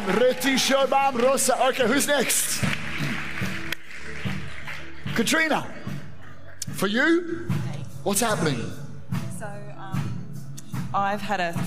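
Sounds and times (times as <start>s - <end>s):
audience clapping: 0.0s - 6.2s
speech: 0.1s - 3.1s, 5.2s - 5.8s, 6.7s - 8.8s, 10.9s - 11.6s.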